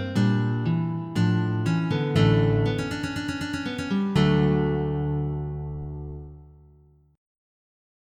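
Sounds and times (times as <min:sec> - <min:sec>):
MIDI prelude: 0:00.2 - 0:06.6.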